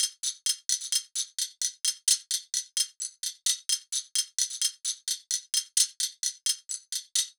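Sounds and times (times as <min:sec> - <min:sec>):
percussion: 0:00.0 - 0:07.3.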